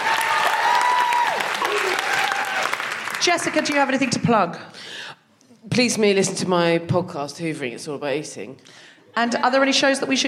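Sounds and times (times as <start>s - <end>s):
high cheer or whistle: 0.0s - 2.8s
audience applause: 0.0s - 4.1s
speech: 3.2s - 10.2s.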